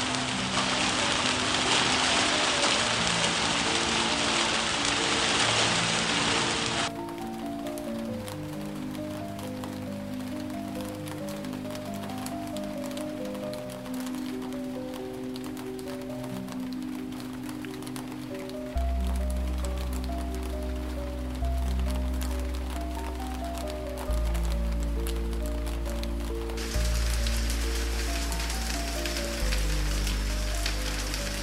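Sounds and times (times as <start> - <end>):
rain on roof: 0.0 - 31.4.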